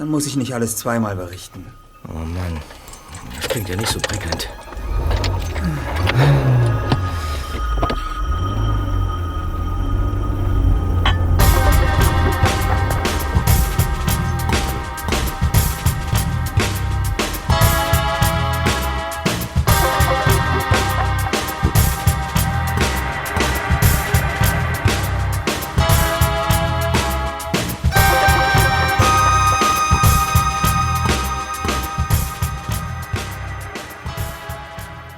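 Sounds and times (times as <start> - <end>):
speech: 0.0 - 4.6
car engine rumble: 0.0 - 35.1
music-like tones: 0.0 - 35.1
road noise: 0.0 - 35.1.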